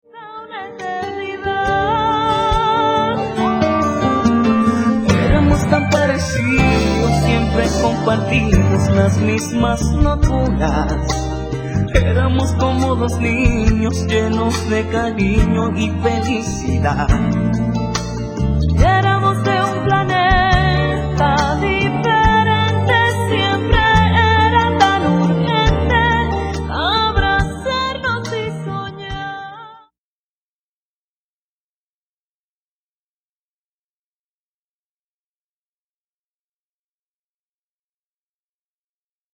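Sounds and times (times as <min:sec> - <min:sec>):
ballad: 0:00.1 - 0:29.9.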